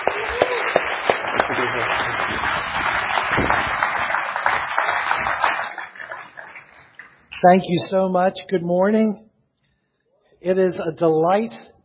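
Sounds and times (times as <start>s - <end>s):
church congregation applauding a speaker at a service: 0.0s - 7.6s
speech: 7.4s - 9.3s, 10.4s - 11.7s.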